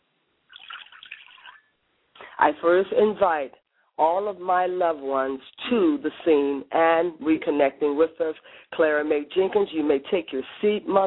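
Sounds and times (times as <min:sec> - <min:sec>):
liquid being poured as a libation: 0:00.5 - 0:01.8
speech: 0:02.4 - 0:11.0.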